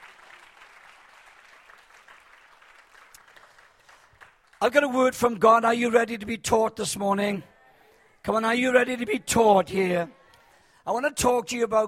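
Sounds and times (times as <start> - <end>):
audience clapping: 0.0 - 5.0
speech: 4.6 - 7.5, 8.2 - 10.2, 10.8 - 11.8.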